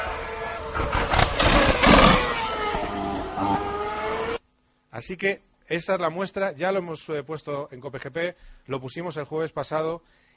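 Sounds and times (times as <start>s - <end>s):
Formula 1 Ferrari engine revving: 0.0s - 4.4s
Formula 1 Ferrari engine crackling backfire pops: 0.7s - 3.0s
speech: 5.0s - 10.3s.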